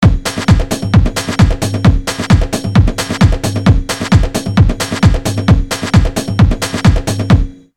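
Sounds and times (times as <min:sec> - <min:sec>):
drums: 0:00.0 - 0:07.6.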